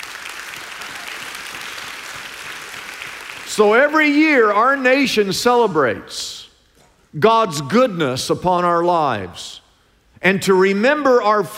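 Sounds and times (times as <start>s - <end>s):
audience clapping: 0.0s - 3.8s
speech: 3.6s - 6.4s, 7.1s - 9.6s, 10.2s - 11.5s.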